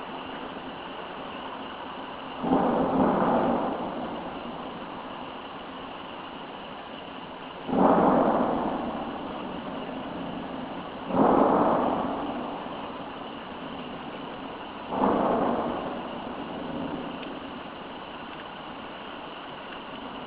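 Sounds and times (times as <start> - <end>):
cannon fire at Culps Hill Gettysburg: 2.4 - 5.4, 7.7 - 18.3.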